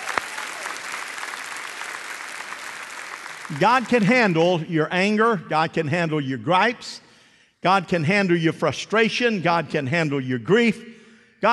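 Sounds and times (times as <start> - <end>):
large crowd clapping at a church service: 0.0 - 4.4
speech: 3.5 - 7.0, 7.6 - 11.5.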